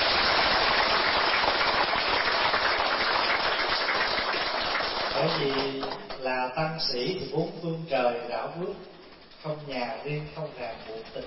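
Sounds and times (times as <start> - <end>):
audience applause: 0.0 - 6.0
speech: 5.3 - 11.2.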